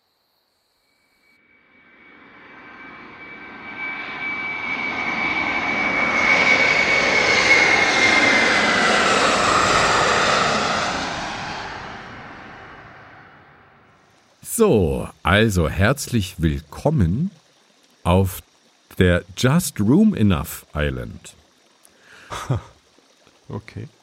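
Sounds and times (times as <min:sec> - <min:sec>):
airplane flying, aircraft engine: 0:02.0 - 0:17.3, 0:18.1 - 0:21.3
speech: 0:14.6 - 0:17.4, 0:18.0 - 0:21.4, 0:22.3 - 0:22.7, 0:23.5 - 0:24.0
laughter: 0:22.2 - 0:22.7.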